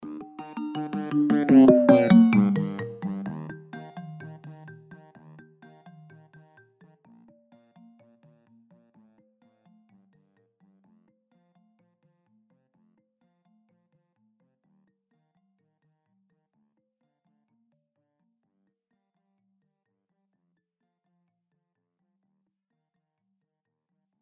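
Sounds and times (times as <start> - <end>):
Doppler-shifted iOS ringtones: 0.6 - 4.9.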